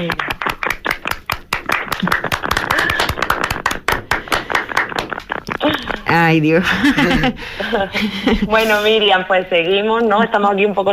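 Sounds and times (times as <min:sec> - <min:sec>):
speech: 0:00.0 - 0:00.4, 0:06.1 - 0:10.9
applause: 0:00.0 - 0:05.6
laughter: 0:06.6 - 0:08.9.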